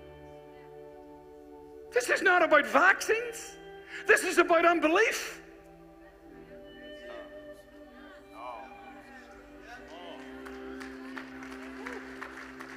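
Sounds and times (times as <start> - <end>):
speech: 2.0 - 5.4
a few audience members clapping: 9.8 - 12.7.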